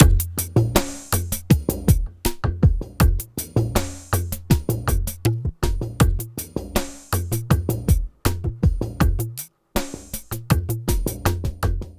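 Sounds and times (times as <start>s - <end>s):
ethnotronic processed percussion: 0.0s - 11.9s.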